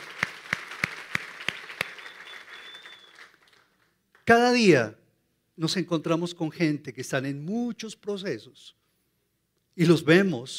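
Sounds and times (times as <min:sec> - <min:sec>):
audience applause: 0:00.0 - 0:03.9
sharp claps: 0:00.0 - 0:04.3
speech: 0:04.3 - 0:05.0, 0:05.6 - 0:08.8, 0:09.8 - 0:10.5.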